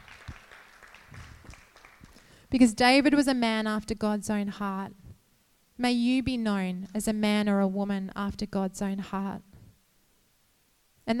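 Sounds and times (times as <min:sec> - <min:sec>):
audience clapping: 0:00.0 - 0:02.4
speech: 0:02.5 - 0:05.0, 0:05.8 - 0:09.5.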